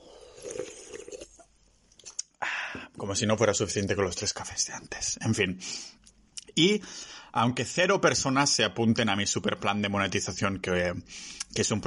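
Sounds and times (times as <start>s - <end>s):
person sipping an energy drink: 0.0s - 3.0s
speech: 3.0s - 6.0s, 6.6s - 11.8s.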